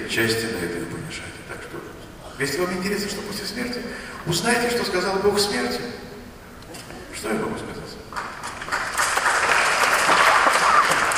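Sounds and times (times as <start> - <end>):
speech: 0.2 - 1.8, 2.4 - 6.0, 7.2 - 7.8
timid applause: 8.1 - 11.1.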